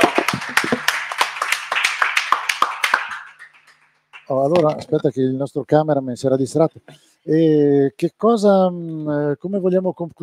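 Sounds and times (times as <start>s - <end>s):
applause: 0.0s - 4.6s
speech: 4.3s - 10.2s.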